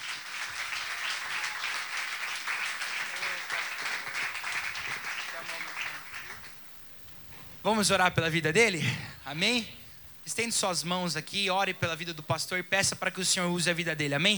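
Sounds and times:
audience applauding: 0.0s - 8.9s
speech: 7.6s - 14.3s.

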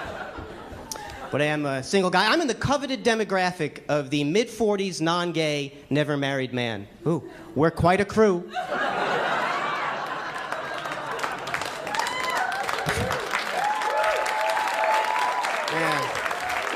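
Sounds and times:
audience laughter: 0.0s - 1.6s, 8.5s - 12.0s, 12.6s - 13.4s
speech: 1.3s - 9.0s
audience clapping: 9.6s - 16.7s
whoops and shouts: 11.9s - 16.3s.

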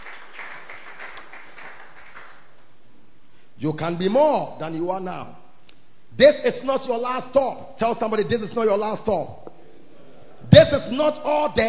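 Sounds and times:
audience clapping: 0.0s - 2.6s
speech: 3.6s - 5.4s, 6.2s - 9.4s, 10.4s - 11.6s.

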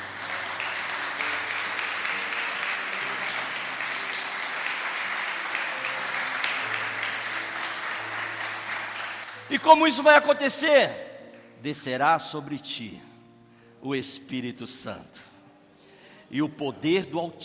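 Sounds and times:
audience applause: 0.0s - 9.5s
low sustained keyboard chords: 0.0s - 15.8s
speech: 9.5s - 11.0s, 11.6s - 13.1s, 13.8s - 15.3s, 16.3s - 17.4s.

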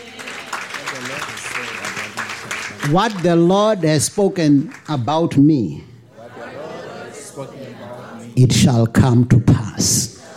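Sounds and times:
church congregation clapping hands: 0.0s - 5.5s
people speaking or chanting: 0.0s - 10.3s
speech: 2.9s - 5.9s, 7.4s - 10.1s.

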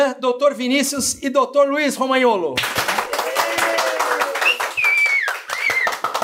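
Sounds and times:
speech: 0.1s - 3.2s
studio audience applause: 2.6s - 6.2s
whistles from crowd: 4.4s - 6.2s.

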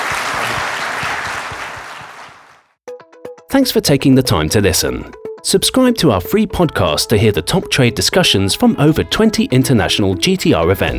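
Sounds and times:
audience applauding: 0.0s - 2.7s
speech: 3.6s - 10.9s.

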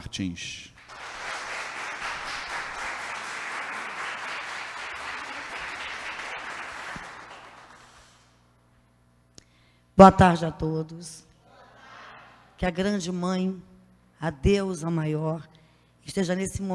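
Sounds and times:
speech: 0.1s - 0.7s, 10.0s - 11.3s, 12.6s - 16.7s
audience applause: 0.8s - 8.2s.

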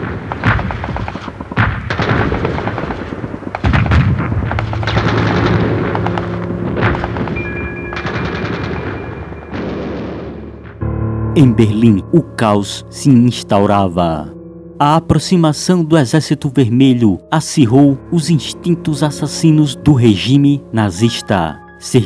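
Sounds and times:
rapid gunfire bursts: 0.0s - 7.4s, 8.0s - 9.1s
heavy booming artillery blasts: 0.0s - 10.8s
speech: 11.4s - 22.0s.

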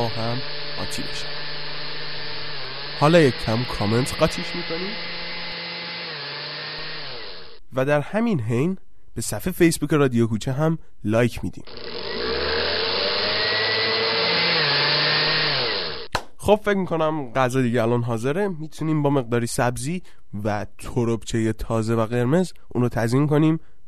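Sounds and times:
speech: 0.0s - 1.4s, 3.0s - 5.1s, 7.7s - 11.9s, 16.5s - 23.8s
blender running: 0.0s - 7.6s, 11.6s - 16.1s.

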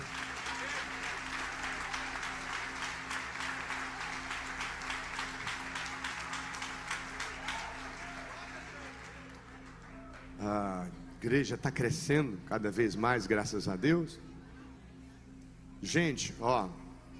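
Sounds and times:
audience applause: 0.0s - 10.4s
speech: 10.4s - 14.3s, 15.8s - 16.8s.

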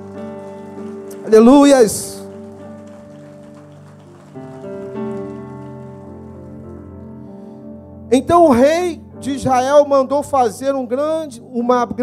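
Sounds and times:
audience clapping: 0.0s - 6.9s
sustained keyboard chords: 0.0s - 12.0s
speech: 1.2s - 2.2s, 8.3s - 12.0s.

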